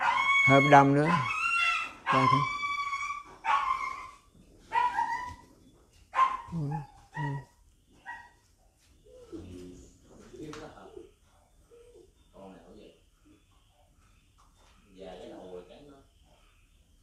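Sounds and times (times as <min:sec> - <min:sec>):
dog barking: 0:00.0 - 0:01.4, 0:02.1 - 0:02.5, 0:03.4 - 0:04.0, 0:04.7 - 0:05.2, 0:06.1 - 0:07.4
speech: 0:00.4 - 0:01.4, 0:02.1 - 0:02.6.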